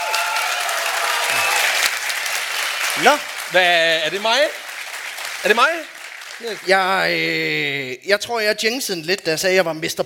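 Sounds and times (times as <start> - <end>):
crowd clapping: 0.0 - 7.4
speech: 3.0 - 4.6, 5.4 - 10.0.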